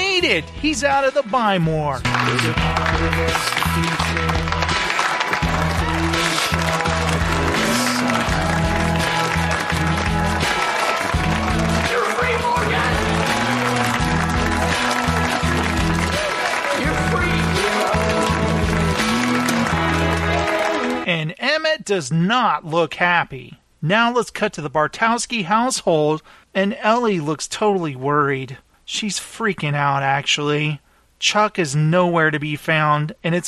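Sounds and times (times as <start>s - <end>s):
speech: 0.2s - 4.8s, 21.2s - 33.4s
slow clap: 2.0s - 21.0s.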